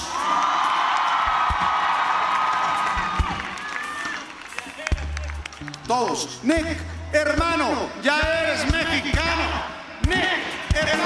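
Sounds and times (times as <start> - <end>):
cheers and whoops: 0.0 - 5.2
crowd applauding: 0.0 - 6.4
speech: 5.9 - 11.0.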